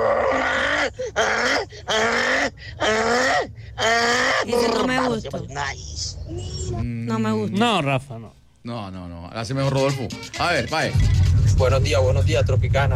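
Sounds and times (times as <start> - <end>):
person imitating a donkey braying: 0.0 - 5.2
speech: 5.0 - 12.9.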